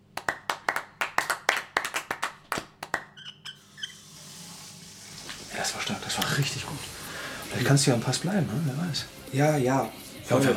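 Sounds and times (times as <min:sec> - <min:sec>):
team clapping: 0:00.0 - 0:03.2
speech: 0:05.8 - 0:10.5.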